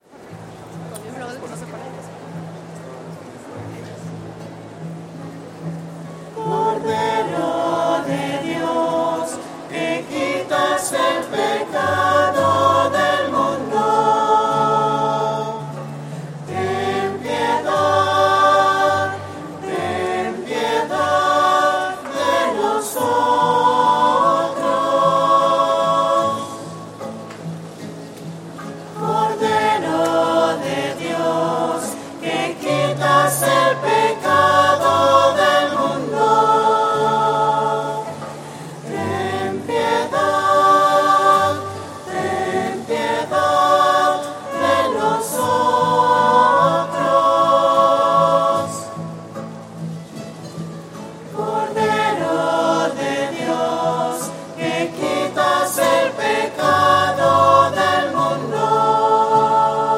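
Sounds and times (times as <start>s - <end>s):
voices singing: 6.3s - 27.8s, 28.8s - 49.6s, 51.2s - 59.9s.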